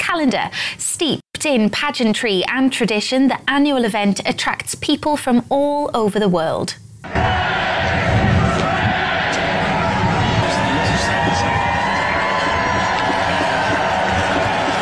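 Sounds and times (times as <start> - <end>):
speech: 0.1 - 8.2
crowd cheering: 7.1 - 14.7.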